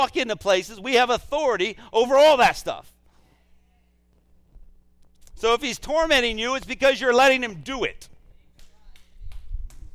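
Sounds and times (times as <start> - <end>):
speech: 0.0 - 3.0, 5.4 - 8.1
a few scattered claps: 8.0 - 9.9.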